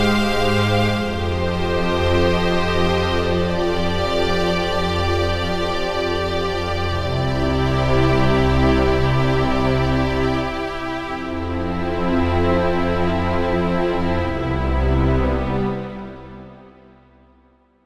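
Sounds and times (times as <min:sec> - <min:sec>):
swelling strings: 0:00.0 - 0:16.4.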